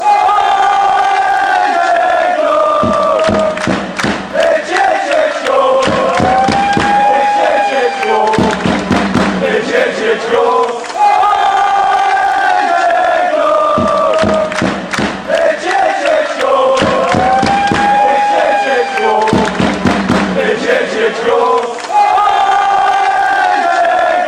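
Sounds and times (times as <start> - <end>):
chanting: 0.0 - 24.2.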